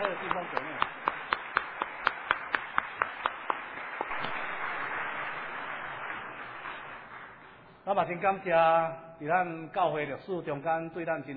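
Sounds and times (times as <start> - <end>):
crowd clapping in rhythm: 0.0 - 8.2
continuous applause from many hands: 0.0 - 8.3
speech: 7.9 - 11.3.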